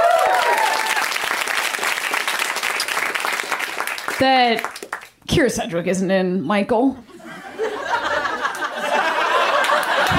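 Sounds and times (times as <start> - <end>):
crowd applause for the producer: 0.0 - 5.2, 8.5 - 10.1
speech: 4.2 - 7.1
laughter: 7.2 - 10.1.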